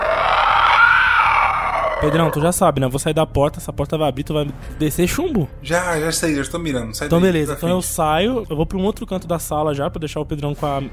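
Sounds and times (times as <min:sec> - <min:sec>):
guttural growl of creature behind door: 0:00.0 - 0:02.6
speech: 0:02.0 - 0:10.9.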